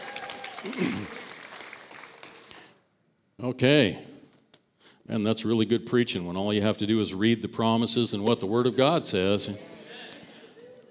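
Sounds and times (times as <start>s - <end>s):
audience whooping: 0.0s - 2.0s
audience clapping: 0.0s - 2.8s
speech: 0.6s - 1.2s, 3.4s - 4.1s, 5.1s - 9.7s.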